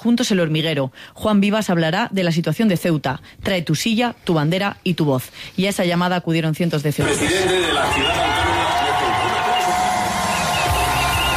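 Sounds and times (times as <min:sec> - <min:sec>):
speech: 0:00.0 - 0:08.5
crowd cheering: 0:07.0 - 0:11.3.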